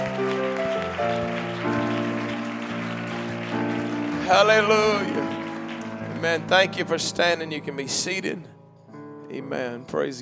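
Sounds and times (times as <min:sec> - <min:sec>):
audience clapping hands: 0:00.0 - 0:07.5
speech: 0:04.3 - 0:05.4, 0:06.2 - 0:08.6, 0:09.3 - 0:10.2.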